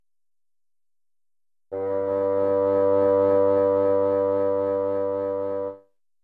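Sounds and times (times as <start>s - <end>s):
bassoon: 1.7s - 5.9s.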